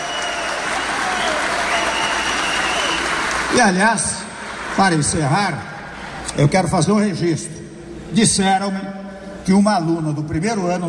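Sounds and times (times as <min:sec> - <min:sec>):
audience applauding: 0:00.0 - 0:05.3
speech: 0:03.6 - 0:04.2, 0:04.8 - 0:05.7, 0:06.3 - 0:10.8.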